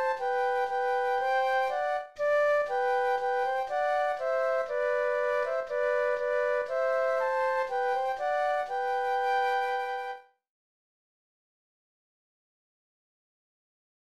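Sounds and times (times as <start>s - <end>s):
flute duet: 0.0s - 10.4s.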